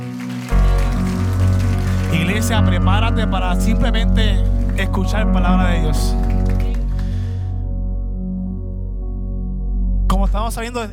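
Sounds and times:
audience applauding: 0:00.0 - 0:07.4
steady musical drone: 0:00.0 - 0:10.4
speech: 0:02.4 - 0:06.3, 0:10.3 - 0:10.9.

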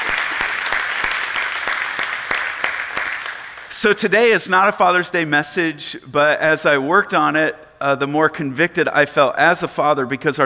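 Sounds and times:
audience applause in a church service: 0:00.0 - 0:03.7
speech: 0:03.8 - 0:10.4.

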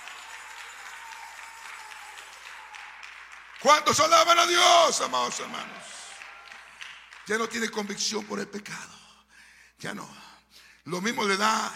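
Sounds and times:
audience applause: 0:00.0 - 0:08.0
speech: 0:03.6 - 0:05.9, 0:07.3 - 0:09.0, 0:09.8 - 0:11.7.

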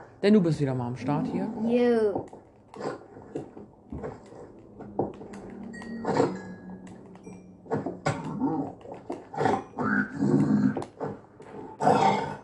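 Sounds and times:
speech: 0:00.2 - 0:03.4
video game pig creature growling and grunting: 0:08.0 - 0:10.8, 0:11.6 - 0:12.4.

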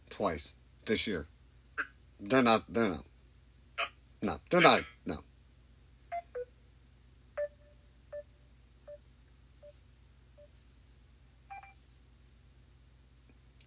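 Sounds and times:
low steady hum: 0:00.0 - 0:13.6
speech: 0:00.2 - 0:01.4, 0:02.2 - 0:03.1, 0:03.8 - 0:05.3
dial-tone beeps from a dropped phone call: 0:06.1 - 0:06.5, 0:07.4 - 0:08.3, 0:11.5 - 0:11.8.

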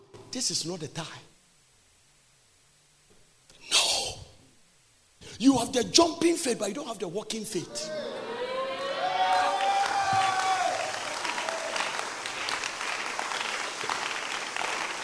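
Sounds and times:
speech: 0:00.4 - 0:01.3, 0:05.4 - 0:08.0
cheering: 0:07.7 - 0:15.0
audience clapping: 0:08.8 - 0:15.0.

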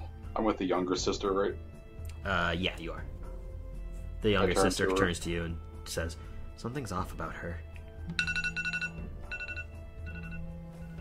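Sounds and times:
speech: 0:00.4 - 0:03.2, 0:04.2 - 0:08.4
timer alarm ringing: 0:08.2 - 0:11.0.

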